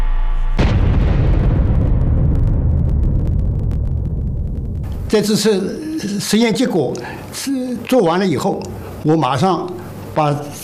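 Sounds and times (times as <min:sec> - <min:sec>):
full-scale detonation test explosion in China's nuclear weapons program: 0:00.4 - 0:05.4
steady hum: 0:02.2 - 0:10.6
speech: 0:05.1 - 0:10.6.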